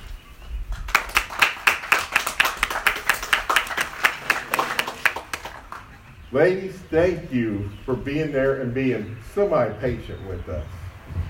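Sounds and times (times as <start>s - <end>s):
round of applause from a crowd: 0.7s - 6.1s
speech: 6.3s - 10.8s.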